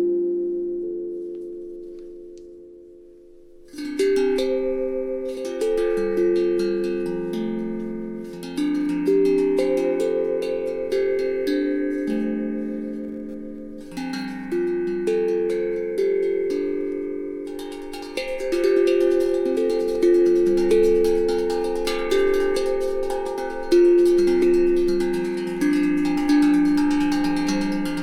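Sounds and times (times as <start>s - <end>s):
F major pentatonic scale tones tuned to A 440: 0.0s - 28.0s.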